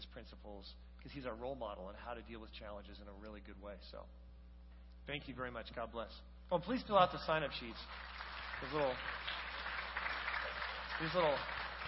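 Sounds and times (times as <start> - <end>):
speech: 0.2 - 4.2, 5.0 - 9.4, 11.0 - 11.6
audience clapping after sermon: 7.5 - 11.8.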